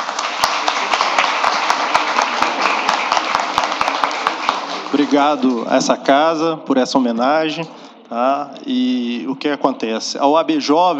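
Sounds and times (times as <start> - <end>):
crowd applauding: 0.0 - 5.8
speech: 5.1 - 10.9.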